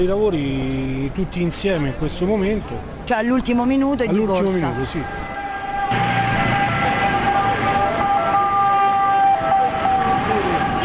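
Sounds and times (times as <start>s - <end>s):
speech: 0.0s - 5.3s
street traffic outside Termini station: 0.0s - 10.8s
siren outside Termini station: 5.3s - 10.8s.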